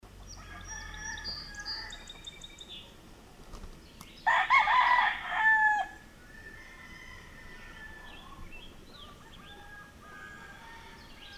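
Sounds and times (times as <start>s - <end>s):
rooster crowing: 0.3s - 2.1s, 4.2s - 8.4s, 9.0s - 11.3s.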